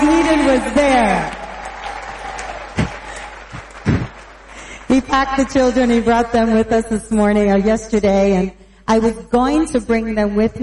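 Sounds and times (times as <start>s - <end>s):
audience applause: 0.0s - 5.1s
speech: 0.6s - 1.4s, 5.0s - 10.6s.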